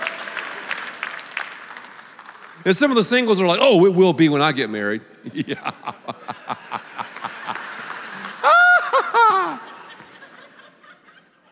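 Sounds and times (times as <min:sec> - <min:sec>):
audience clapping: 0:00.0 - 0:03.2, 0:05.9 - 0:10.4
speech: 0:02.6 - 0:06.3
laughter: 0:05.3 - 0:11.5.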